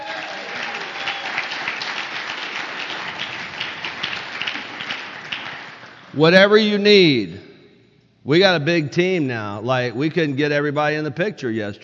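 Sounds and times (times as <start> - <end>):
audience applause: 0.0 - 6.2
speech: 6.2 - 7.5, 8.2 - 11.8.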